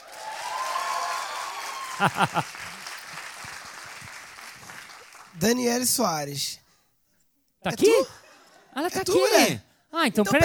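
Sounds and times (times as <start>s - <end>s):
audience applause: 0.0s - 5.8s
laughter: 1.9s - 2.9s
speech: 2.0s - 2.7s, 5.4s - 6.6s, 7.6s - 8.2s, 8.8s - 10.4s.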